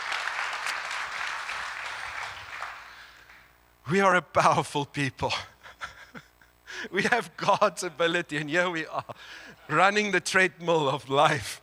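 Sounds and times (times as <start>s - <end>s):
audience clapping: 0.0s - 3.6s
speech: 3.9s - 5.5s, 6.8s - 11.6s
laughter: 5.3s - 7.8s, 8.7s - 10.0s.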